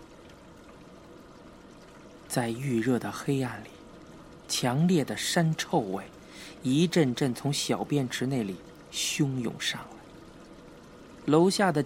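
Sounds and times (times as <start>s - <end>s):
water running from a tap: 0.0s - 11.8s
speech: 2.3s - 3.8s, 4.5s - 10.0s, 11.2s - 11.8s.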